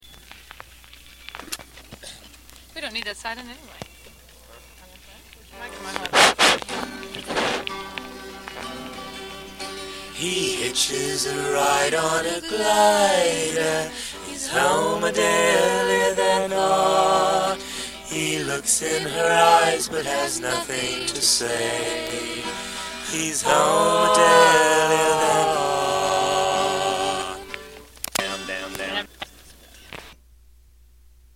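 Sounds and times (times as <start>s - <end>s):
vocals: 5.2s - 6.4s, 9.8s - 29.1s.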